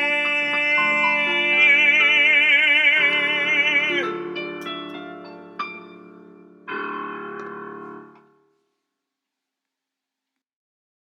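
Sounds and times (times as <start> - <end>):
piano: 0.0 - 8.7.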